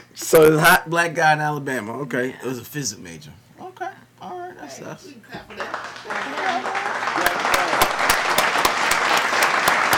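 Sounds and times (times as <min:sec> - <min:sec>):
speech: 0:00.2 - 0:03.4, 0:04.6 - 0:06.8
audience applause at a comedy show: 0:05.5 - 0:09.9.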